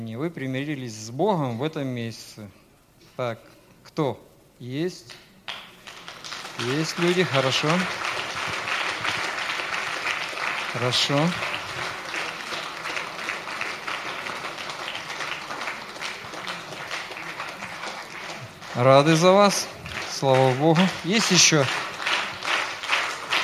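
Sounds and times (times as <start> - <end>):
speech: 0.1 - 2.6, 3.2 - 5.3, 6.6 - 8.0, 10.8 - 11.9, 18.8 - 21.8
audience applause: 5.5 - 23.4.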